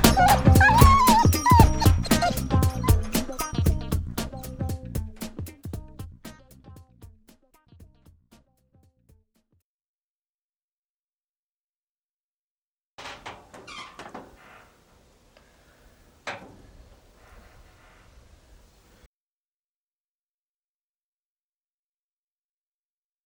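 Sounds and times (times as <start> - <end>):
funk music: 0.0 - 8.4.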